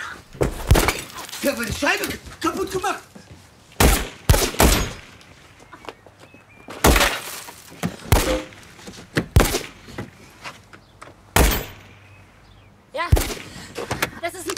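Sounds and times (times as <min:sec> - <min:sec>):
gunshots in a police radio drama: 0:00.5 - 0:01.1, 0:03.8 - 0:05.2, 0:06.8 - 0:07.3, 0:08.1 - 0:08.6, 0:09.3 - 0:09.8, 0:11.4 - 0:12.0, 0:13.1 - 0:13.6
speech: 0:01.4 - 0:03.1.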